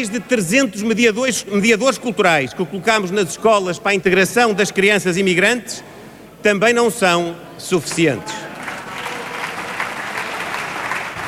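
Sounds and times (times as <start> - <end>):
speech: 0.0 - 8.4
applause from government benches in the Portuguese parliament: 7.8 - 11.2.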